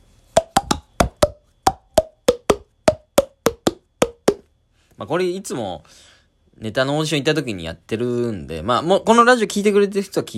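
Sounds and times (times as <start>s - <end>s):
cupped hands popping air: 0.3s - 4.4s
speech: 5.0s - 10.3s.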